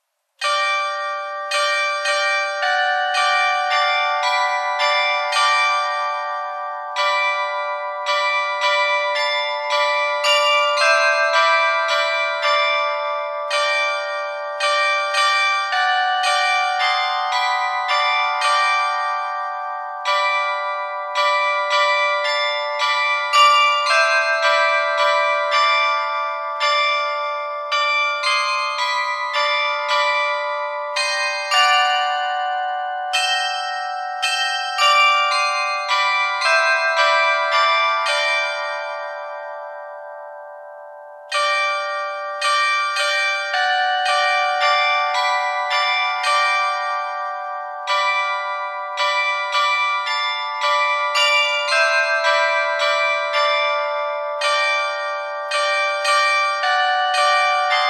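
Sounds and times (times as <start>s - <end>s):
glockenspiel: 0.4s - 57.8s.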